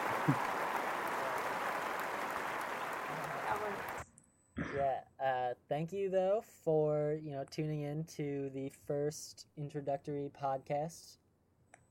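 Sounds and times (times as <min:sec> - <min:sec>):
applause: 0:00.0 - 0:04.0
speech: 0:00.2 - 0:00.5, 0:05.7 - 0:11.2.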